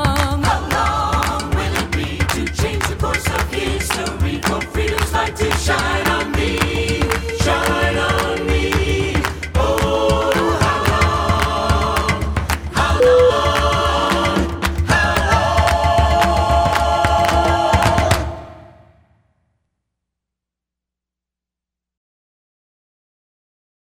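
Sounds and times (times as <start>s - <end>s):
a cappella singing: 0.0s - 18.8s.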